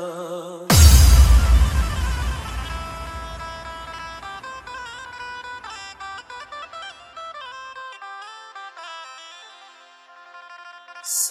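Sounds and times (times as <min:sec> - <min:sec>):
Bhakti DJ remix vibrate mix: 0:00.7 - 0:04.3.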